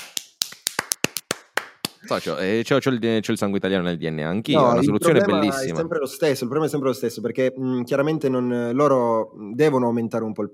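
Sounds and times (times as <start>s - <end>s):
sparse handclaps: 0.0s - 2.1s
speech: 2.0s - 10.5s.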